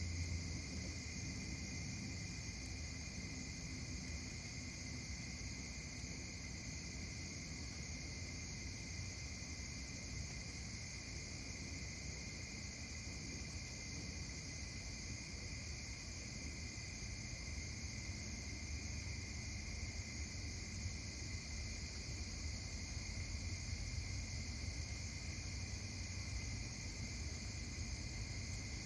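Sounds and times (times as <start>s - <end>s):
late August night ambience in the Berkshires: 0.0s - 28.8s.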